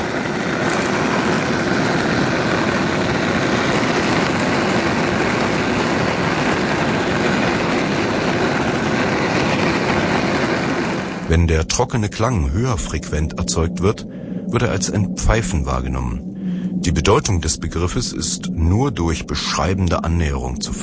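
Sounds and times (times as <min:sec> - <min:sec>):
cardboard boxes bowed with a cello bow: 0:00.0 - 0:20.8
speech: 0:11.4 - 0:20.8.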